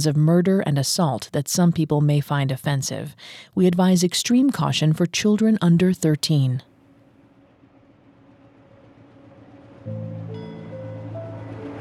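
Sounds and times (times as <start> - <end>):
speech: 0.0 - 6.7
faint tonal whines: 6.7 - 11.7
train rumbling with a low droning engine hum: 6.7 - 11.7.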